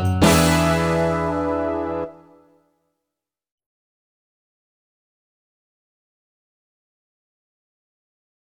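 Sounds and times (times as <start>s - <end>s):
snare drum: 0.0s - 1.6s
bass drum: 0.0s - 2.1s.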